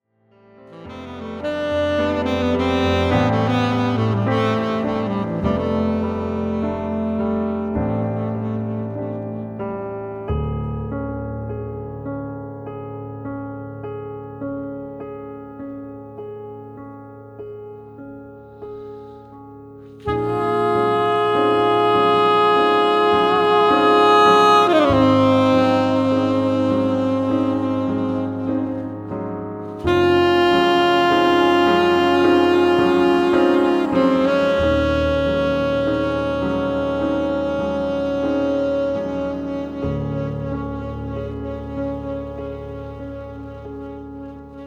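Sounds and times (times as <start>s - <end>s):
musical trio: 0.7s - 44.6s.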